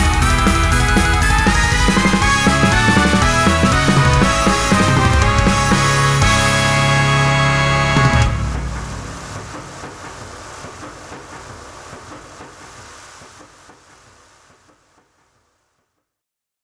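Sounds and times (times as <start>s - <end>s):
Halloween party instrumental music: 0.0s - 9.7s.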